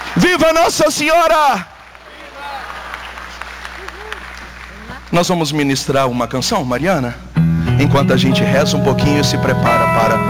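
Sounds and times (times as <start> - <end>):
audience applause: 0.0 - 5.2
speech: 0.2 - 1.7, 5.1 - 7.2, 7.8 - 10.2.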